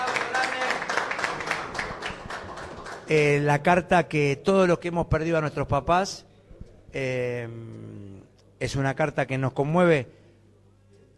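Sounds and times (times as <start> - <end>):
applause: 0.0 - 3.4
speech: 3.1 - 6.3, 6.9 - 10.2.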